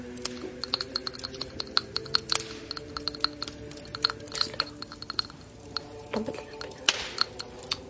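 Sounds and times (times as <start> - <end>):
object dropped into small glass vial of water clinking: 0.2 - 7.8.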